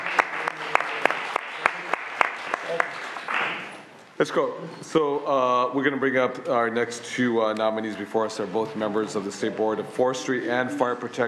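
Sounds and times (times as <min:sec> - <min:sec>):
small audience applause: 0:00.0 - 0:04.0
speech: 0:02.7 - 0:03.0, 0:04.2 - 0:11.2.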